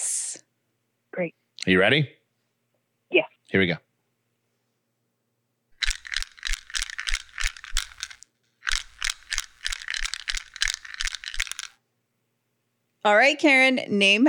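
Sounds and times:
speech: 1.2 - 2.2, 3.1 - 3.8, 13.0 - 14.2
small ball rattling inside a plastic maze game: 5.8 - 11.8.

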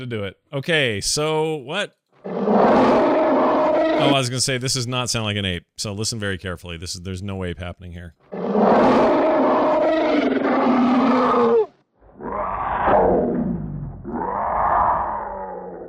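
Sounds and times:
speech: 0.0 - 3.3, 3.9 - 9.1
voice imitating a big cat roar: 2.6 - 4.2, 8.7 - 15.8.

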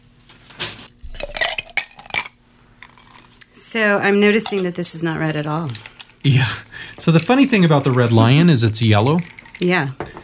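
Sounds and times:
cocktail shaker rattling with ice: 1.1 - 3.3, 7.5 - 9.8
speech: 3.7 - 10.1.

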